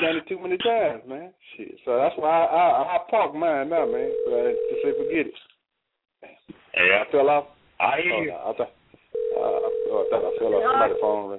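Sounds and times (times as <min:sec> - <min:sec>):
speech: 0:00.0 - 0:05.5, 0:06.5 - 0:11.3
phone ringing on a call: 0:03.8 - 0:05.2, 0:09.2 - 0:11.3.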